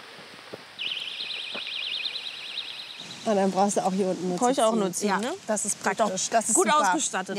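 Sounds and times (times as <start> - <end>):
personal safety alarm siren: 0.8 - 3.4
speech: 3.2 - 7.3.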